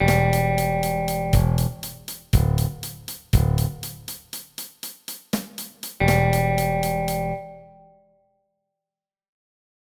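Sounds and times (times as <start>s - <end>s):
endless looping music: 0.0s - 7.7s.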